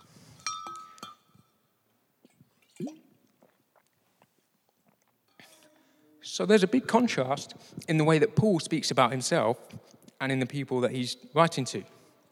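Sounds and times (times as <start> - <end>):
glass clinking: 0.0 - 1.6
small wet mouth clicks: 2.2 - 5.5, 9.6 - 10.2
quiet sips and gulp of water: 2.2 - 5.7
speech: 6.4 - 12.0.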